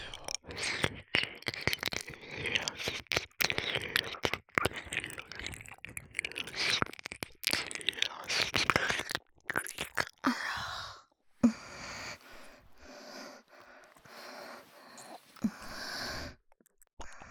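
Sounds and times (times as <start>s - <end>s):
ear licking: 0.2s - 16.3s
fellatio sounds: 0.4s - 16.4s
cowgirl position sex sounds: 7.6s - 16.3s.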